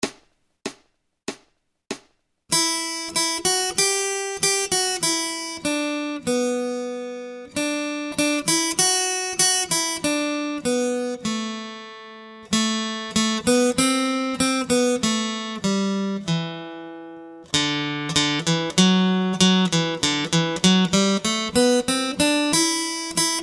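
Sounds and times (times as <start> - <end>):
acoustic guitar accompaniment: 2.5 - 23.4.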